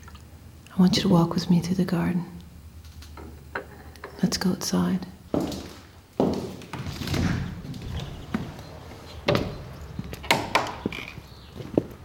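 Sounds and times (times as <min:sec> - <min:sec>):
speech: 0:00.8 - 0:02.4, 0:04.2 - 0:05.6
footsteps walking down stairs: 0:05.3 - 0:12.0.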